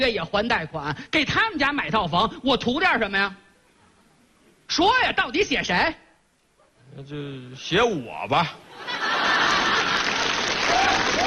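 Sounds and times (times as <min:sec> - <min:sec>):
speech: 0:00.0 - 0:03.4, 0:04.7 - 0:06.0, 0:06.9 - 0:09.2
audience applause: 0:09.0 - 0:11.2.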